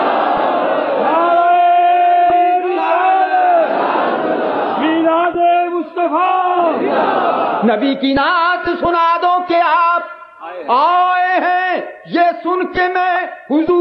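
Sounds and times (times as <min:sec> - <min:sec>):
crowd at a religious gathering shouting in response to a call: 0:00.0 - 0:07.7
speech: 0:07.6 - 0:13.7.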